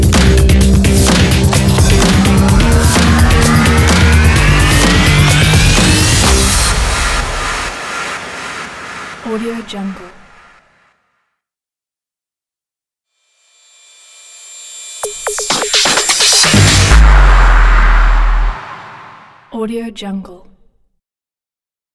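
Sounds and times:
intro logo music: 0.0 - 9.3, 15.2 - 19.5.

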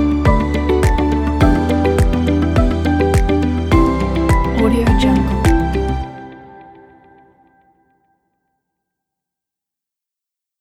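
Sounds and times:
ambient music: 0.0 - 7.9.

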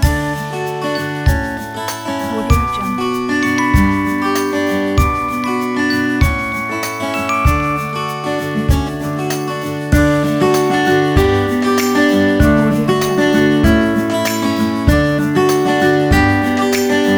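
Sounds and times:
playful acoustic guitars: 0.0 - 17.1.

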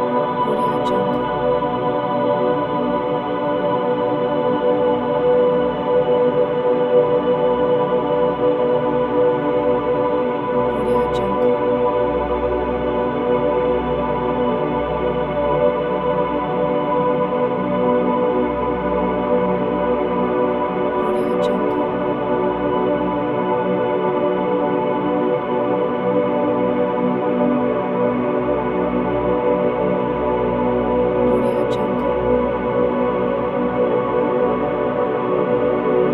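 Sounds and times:
airy ethereal majestic choir drone: 0.0 - 36.1.

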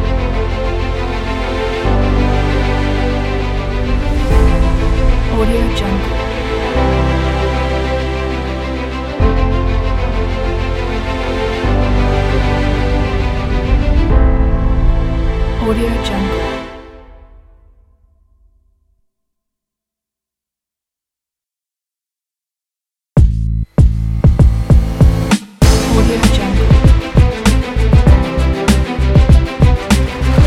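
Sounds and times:
epic sport hip hop music: 0.0 - 17.1, 23.2 - 30.4.

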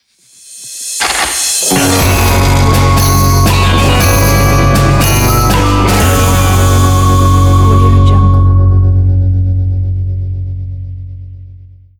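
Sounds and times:
spaghetti western logo sting: 0.4 - 9.5.

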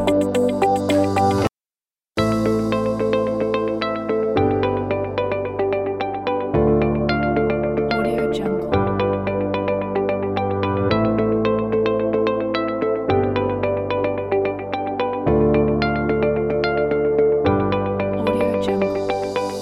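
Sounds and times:
minimal corporate music: 0.0 - 1.5, 2.2 - 19.5.

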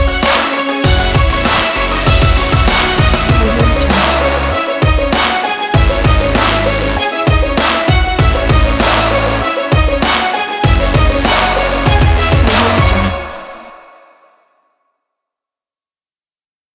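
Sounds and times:
dramatic sport rock drum kit: 0.0 - 6.7, 7.3 - 9.1, 9.7 - 13.2.

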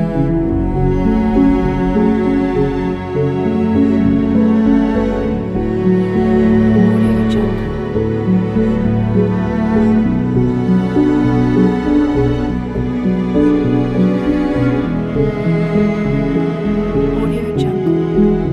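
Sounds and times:
sad piano music: 0.0 - 18.5.

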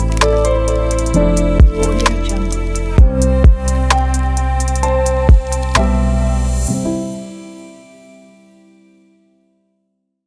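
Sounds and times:
gentle abstract sound: 0.0 - 7.0.

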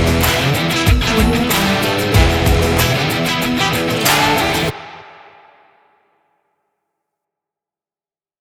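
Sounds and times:
aggressive and powerful rock trailer music: 0.0 - 4.9.

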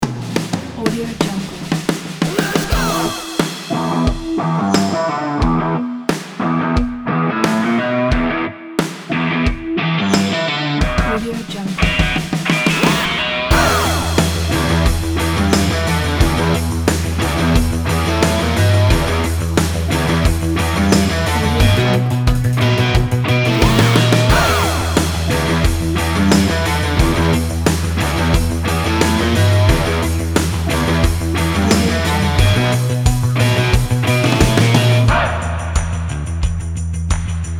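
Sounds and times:
energetic indie rock music: 0.0 - 37.5.

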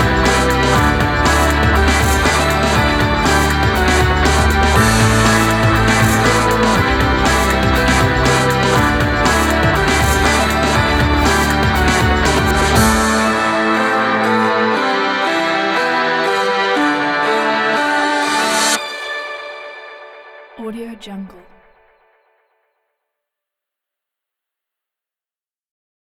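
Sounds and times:
epic energetic sport music: 0.0 - 19.5.

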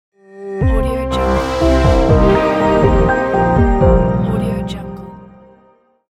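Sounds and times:
soft synth logo sound: 0.8 - 5.5.

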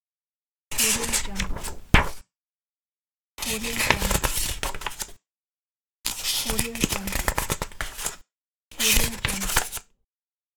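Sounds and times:
page turning: 0.9 - 2.2, 3.6 - 5.1, 6.1 - 8.2, 8.8 - 9.8.

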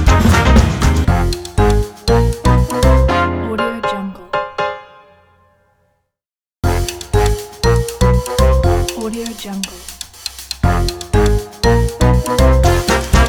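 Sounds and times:
upbeat jazz logo music: 0.0 - 3.4, 6.6 - 9.0, 10.6 - 13.2.

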